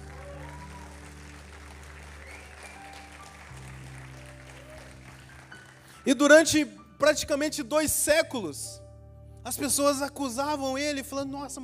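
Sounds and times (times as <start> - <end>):
crowd applauding: 0.0 - 6.2
speech: 6.0 - 8.8, 9.4 - 11.6.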